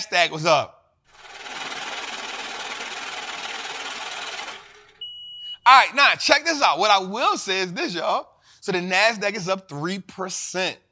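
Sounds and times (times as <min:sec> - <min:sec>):
speech: 0:00.0 - 0:00.8, 0:05.7 - 0:10.8
money counting machine sound effect: 0:01.1 - 0:05.1.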